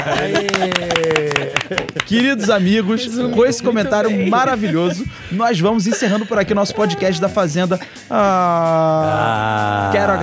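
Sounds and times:
round of applause: 0.0s - 2.2s
laughter: 0.0s - 7.3s
speech: 0.0s - 10.2s.

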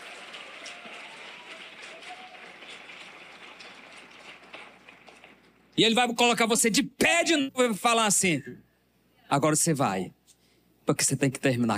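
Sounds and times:
audience applause: 0.0s - 5.8s
speech: 5.8s - 8.7s, 9.3s - 10.2s, 10.9s - 11.7s.

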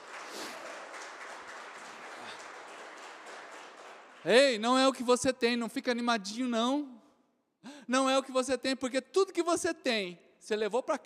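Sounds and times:
audience applause: 0.0s - 4.6s
speech: 4.2s - 7.0s, 7.9s - 11.0s.

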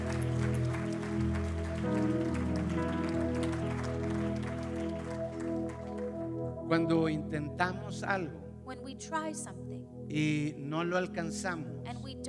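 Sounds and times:
audience applause: 0.0s - 6.4s
speech: 6.7s - 12.2s.

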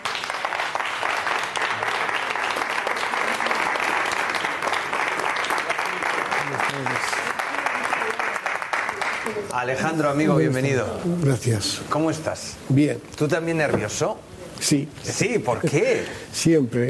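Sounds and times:
audience applause: 0.0s - 9.7s
speech: 9.5s - 16.8s.

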